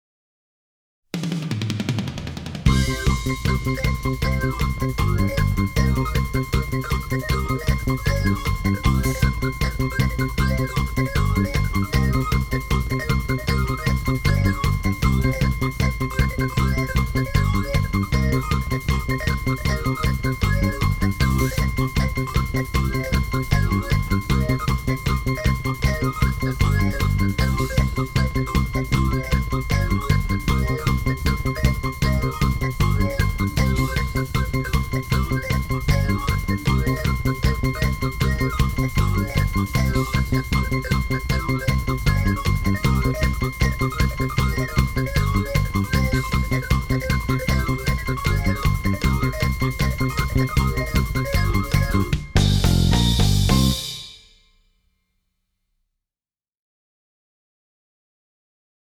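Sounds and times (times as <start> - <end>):
fast tempo rhythm: 1.2 - 54.4.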